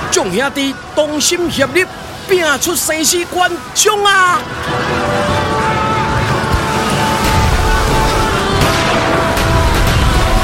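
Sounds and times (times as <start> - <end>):
speech: 0.2 - 5.4
booming cannon fire from warships: 6.6 - 10.4.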